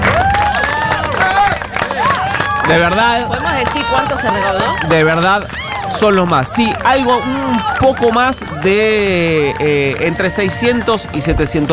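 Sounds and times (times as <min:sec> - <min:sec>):
cheering: 0:00.0 - 0:11.7
studio audience applause: 0:00.0 - 0:11.7
speech: 0:02.7 - 0:11.7.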